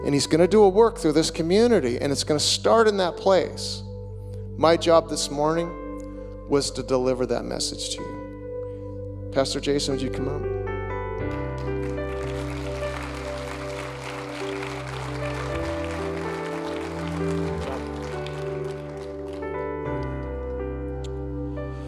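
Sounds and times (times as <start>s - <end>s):
speech: 0.0s - 3.9s, 4.6s - 5.8s, 6.5s - 8.2s, 9.3s - 10.6s
sustained keyboard or organ chords: 0.0s - 21.8s
audience applause: 11.3s - 19.7s.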